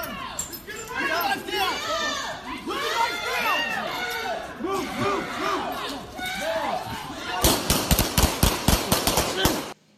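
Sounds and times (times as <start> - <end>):
agitated crowd shouting and chatter: 0.2 - 7.7
gunshots from a shooting in Philadelphia: 7.4 - 9.8.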